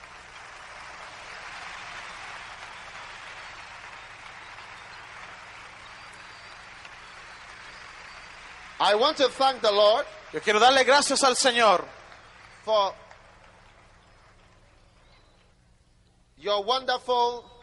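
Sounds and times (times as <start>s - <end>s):
audience applause: 0.0s - 15.4s
speech: 8.8s - 12.0s, 12.7s - 13.0s, 16.4s - 17.5s.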